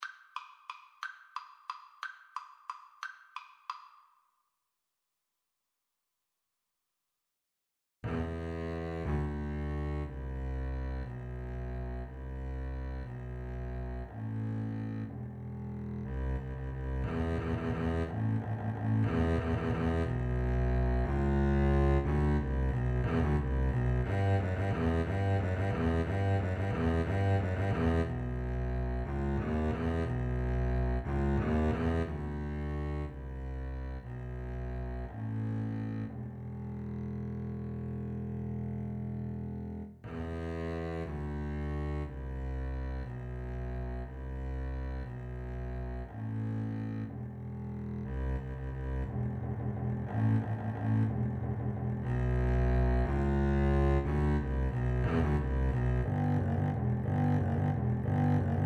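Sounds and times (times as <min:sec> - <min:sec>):
double bass duet: 0:08.0 - 0:58.6.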